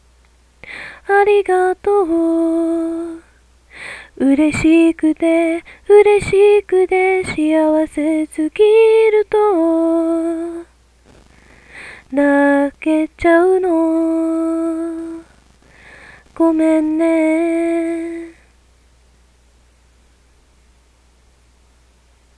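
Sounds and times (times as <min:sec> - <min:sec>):
person singing in Japanese with occasional stumbles and mistakes: 0:01.0 - 0:03.3, 0:04.1 - 0:11.3, 0:12.1 - 0:18.5.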